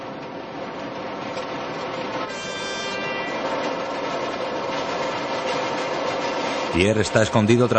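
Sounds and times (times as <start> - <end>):
train pulling into a station platform: 0.0 - 7.7
high tonal note: 2.3 - 3.6
speech: 6.8 - 7.7.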